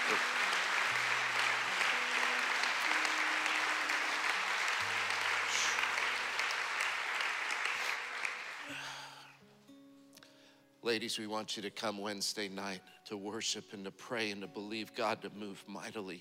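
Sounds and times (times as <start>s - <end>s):
audience applause: 0.0s - 9.2s
speech: 10.9s - 16.2s.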